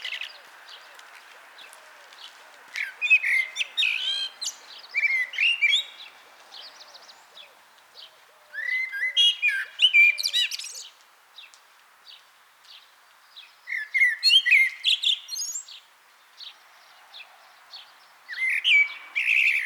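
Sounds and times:
common blackbird singing: 1.6s - 11.0s, 13.4s - 19.6s.

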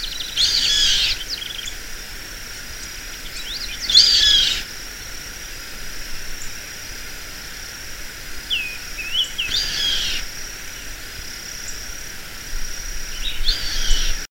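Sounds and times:
bird chirping: 0.0s - 1.8s, 2.8s - 4.7s, 8.5s - 11.0s, 12.8s - 14.2s
steady hiss: 0.0s - 14.2s.

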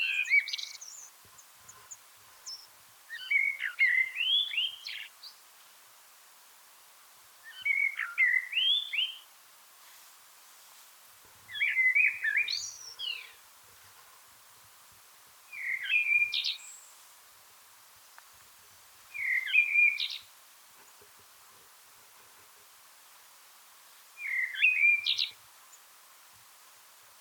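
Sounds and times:
common blackbird singing: 0.0s - 1.1s, 2.4s - 5.1s, 7.5s - 9.2s, 11.5s - 13.4s, 15.5s - 16.9s, 19.1s - 20.3s, 24.2s - 25.4s.

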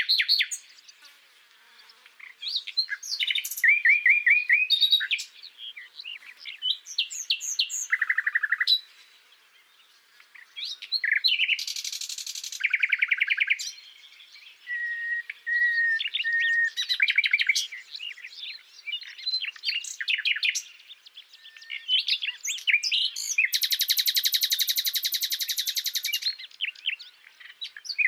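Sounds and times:
common nightingale singing: 0.0s - 28.0s.

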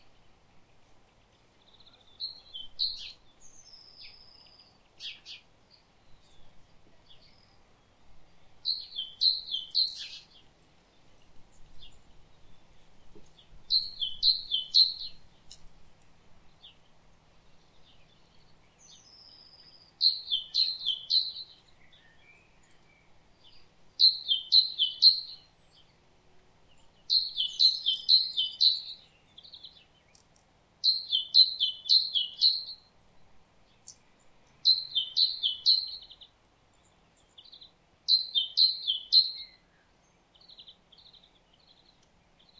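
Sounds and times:
great tit singing: 1.2s - 15.6s, 17.6s - 26.0s, 26.7s - 42.5s.

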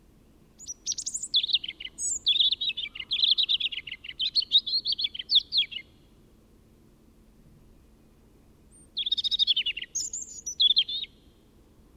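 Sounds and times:
European robin singing: 0.5s - 6.1s, 7.6s - 11.4s.

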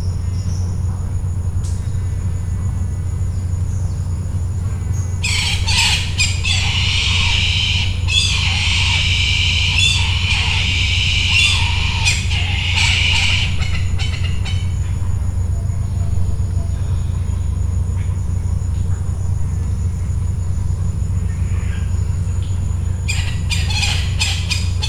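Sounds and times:
constant low mechanical hum: 0.0s - 24.8s
rough raspy bird squawks: 5.2s - 14.8s, 23.0s - 24.8s.

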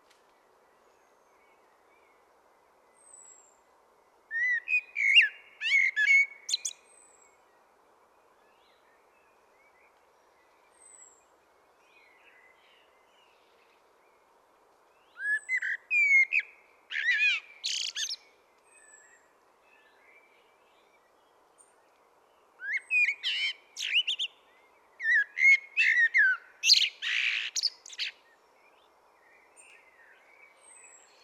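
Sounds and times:
common blackbird singing: 4.3s - 6.8s, 15.2s - 19.2s, 22.6s - 28.4s.

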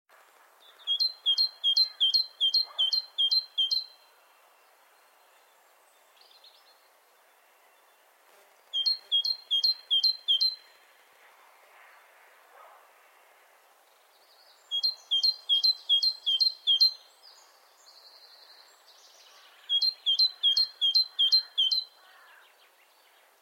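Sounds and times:
background hiss: 0.1s - 23.3s
great tit singing: 0.6s - 4.8s, 8.6s - 10.9s, 14.4s - 23.3s.

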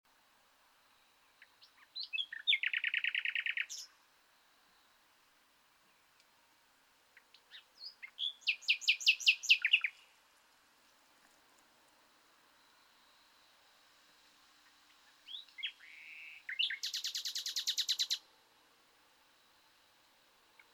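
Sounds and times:
common nightingale Luscinia megarhynchos singing: 1.0s - 4.0s, 7.1s - 10.2s, 14.6s - 18.3s.

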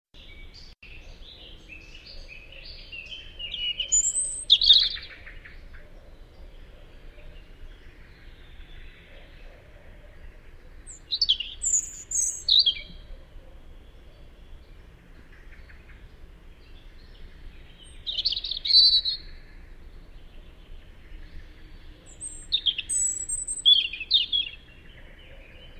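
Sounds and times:
European robin singing: 0.2s - 25.7s.

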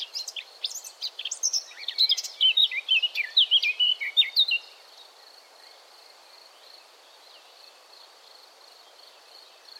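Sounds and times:
Eurasian blackcap song: 0.0s - 4.8s.

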